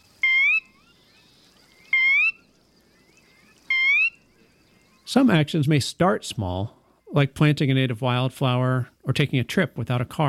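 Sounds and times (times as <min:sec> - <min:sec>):
soft steady hum: 0:00.0 - 0:10.2
sora calling: 0:00.2 - 0:05.1
speech: 0:05.1 - 0:10.2.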